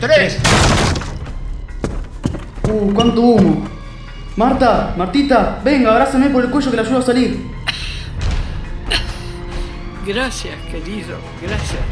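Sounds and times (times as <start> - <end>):
speech: 0.0 - 1.0, 2.7 - 3.7, 4.4 - 7.6, 10.1 - 11.9
door being forced open: 0.4 - 1.3
debris thuds: 0.4 - 2.5.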